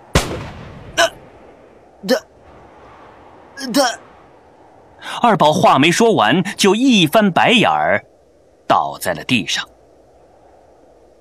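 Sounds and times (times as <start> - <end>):
pistol shot fired at a man: 0.1 - 1.0
speech: 0.3 - 0.6, 2.0 - 2.3, 3.6 - 4.0, 5.2 - 8.1, 8.7 - 9.8.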